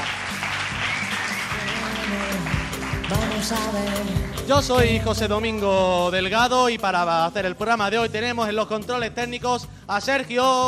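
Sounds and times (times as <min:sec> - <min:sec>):
crowd applause: 0:00.0 - 0:04.8
speech: 0:03.4 - 0:10.6.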